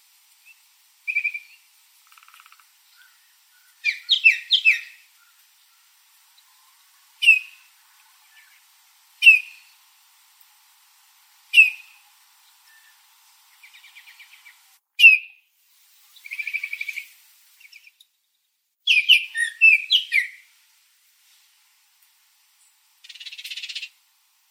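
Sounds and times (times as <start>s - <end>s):
bird whistling and chirping: 0.5s - 1.6s, 3.0s - 5.0s, 7.2s - 7.6s, 9.2s - 9.7s, 11.6s - 12.0s, 13.6s - 15.4s, 18.9s - 20.4s.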